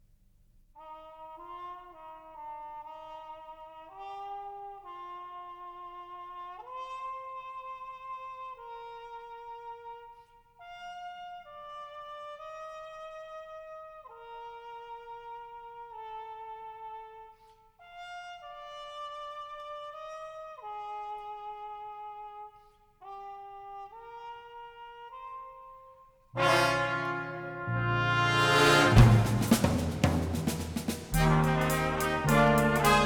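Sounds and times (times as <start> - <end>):
percussion ensemble: 26.4 - 33.0
jazz drummer: 28.2 - 33.0.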